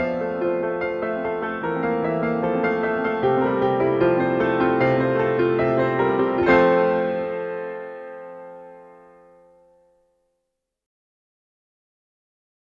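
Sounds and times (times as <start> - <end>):
fast piano solo: 0.0 - 9.6.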